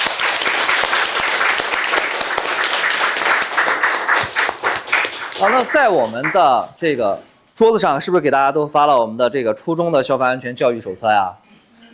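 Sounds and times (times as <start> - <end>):
audience applause: 0.0 - 6.6
speech: 5.4 - 11.5.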